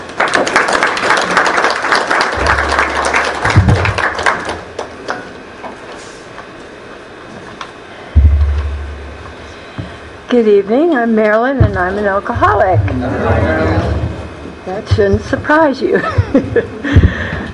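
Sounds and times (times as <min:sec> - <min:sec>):
audience clapping at a recovery meeting for alcoholics: 0:00.0 - 0:05.4
low thumps: 0:02.4 - 0:04.0, 0:08.1 - 0:10.3, 0:11.6 - 0:15.6
speech: 0:10.3 - 0:14.0, 0:14.6 - 0:16.8.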